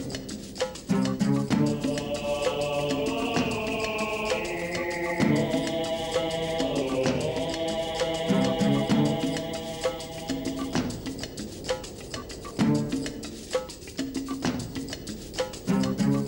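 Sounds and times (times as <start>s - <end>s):
desert ambience: 0.0s - 16.2s.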